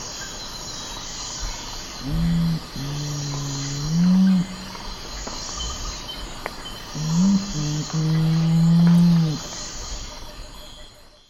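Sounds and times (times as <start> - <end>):
Nocturnal Curassow hooting in the eastern lowlands of South America: 2.0 - 4.8, 7.0 - 9.4.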